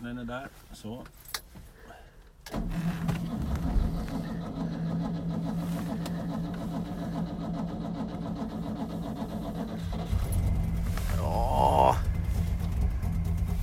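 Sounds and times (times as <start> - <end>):
speech: 0.0 - 1.6
cold car engine starting with choke and idling: 2.3 - 13.6.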